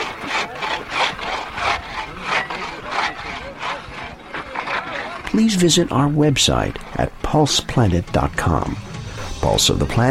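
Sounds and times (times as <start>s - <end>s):
antique ice saw cutting ice: 0.0s - 6.0s
speech: 5.3s - 10.0s.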